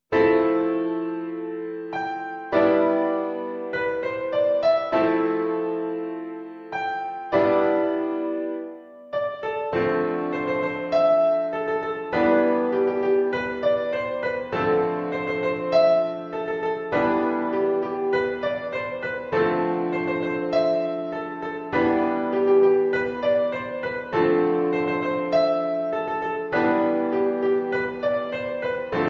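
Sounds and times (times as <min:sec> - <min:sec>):
easy piano: 0:00.0 - 0:29.0.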